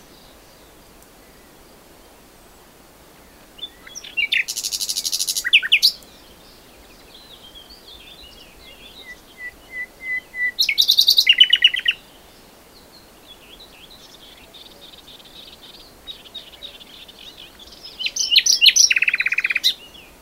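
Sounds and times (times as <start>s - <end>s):
common nightingale song of whistles and rattling trills: 3.6s - 12.1s, 12.9s - 20.1s.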